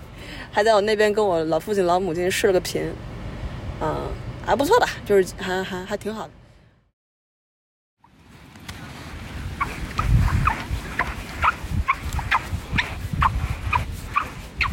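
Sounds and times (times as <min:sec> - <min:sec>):
speech: 0:00.5 - 0:03.1, 0:03.8 - 0:06.4
squeaking footsteps on sand: 0:08.0 - 0:14.7.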